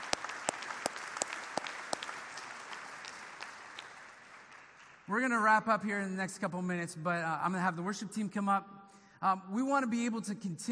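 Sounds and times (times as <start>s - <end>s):
audience clapping: 0.0s - 5.5s
speech: 5.1s - 10.6s.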